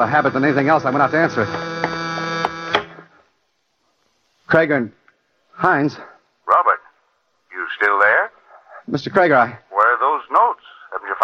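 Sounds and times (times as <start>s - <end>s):
speech: 0.0s - 1.7s, 4.5s - 5.0s, 5.6s - 6.8s, 8.9s - 11.2s
switchboard buzzing with incoming call: 0.0s - 3.2s.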